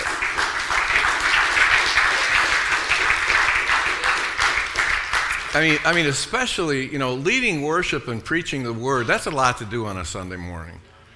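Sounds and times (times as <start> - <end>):
audience clapping: 0.0 - 6.7
speech: 5.5 - 10.9.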